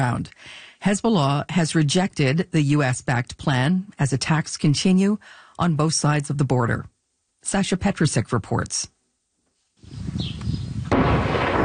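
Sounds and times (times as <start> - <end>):
speech: 0.0 - 9.0, 9.8 - 10.5
Israeli artillery shelling in Lebanon: 10.8 - 11.6.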